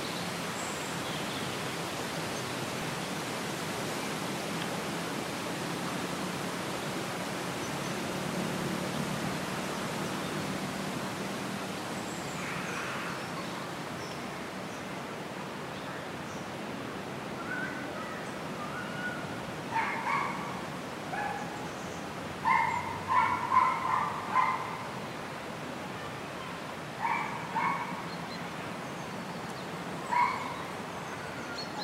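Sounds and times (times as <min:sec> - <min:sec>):
country park soundscape: 0:00.0 - 0:31.8.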